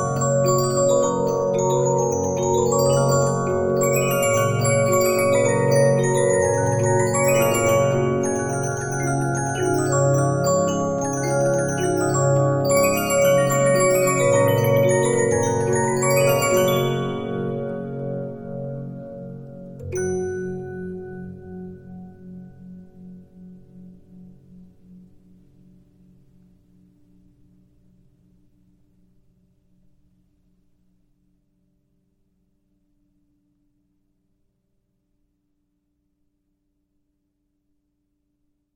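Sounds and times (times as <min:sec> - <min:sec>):
Regina 15-inch disc music box: 0:00.0 - 0:18.5, 0:19.6 - 0:22.2.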